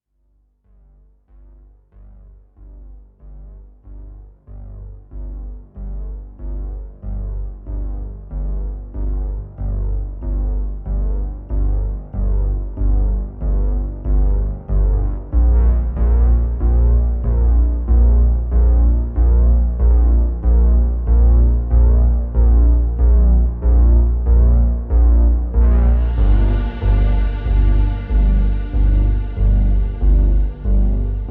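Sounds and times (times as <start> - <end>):
solo bass: 0.7 - 31.3.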